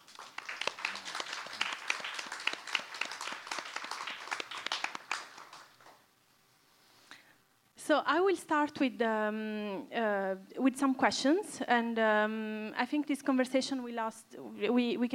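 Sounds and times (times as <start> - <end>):
audience applause: 0.0 - 6.0
speech: 7.9 - 15.1.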